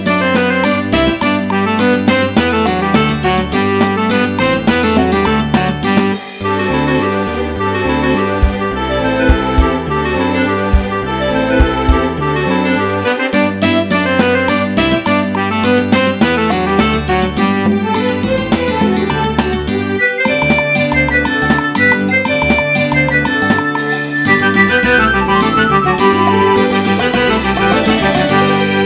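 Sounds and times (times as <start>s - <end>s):
rigaudon dance music: 0.2s - 12.6s, 13.7s - 28.8s.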